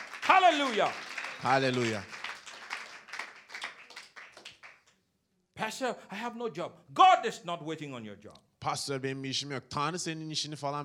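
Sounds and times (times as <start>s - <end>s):
congregation clapping in praise during a church service: 0.0s - 5.0s
speech: 0.4s - 2.2s, 5.6s - 10.8s.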